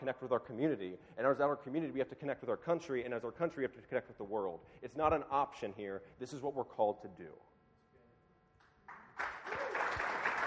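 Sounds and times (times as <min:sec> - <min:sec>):
speech: 0:00.0 - 0:07.5
audience applause: 0:08.9 - 0:10.4.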